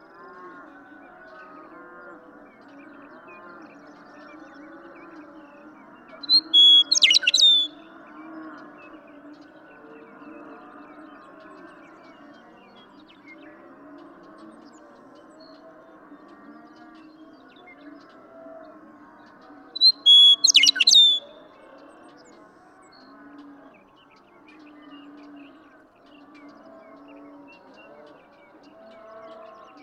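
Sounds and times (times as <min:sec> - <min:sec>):
faint cattle sounds: 0:00.0 - 0:29.8
western meadowlark whistling song: 0:06.3 - 0:07.8, 0:19.8 - 0:21.3.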